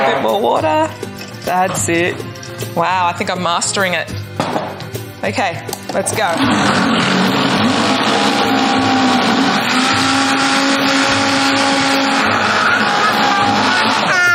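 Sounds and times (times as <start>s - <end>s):
speech: 0.2s - 7.8s
blender blending a mixture: 6.2s - 14.3s.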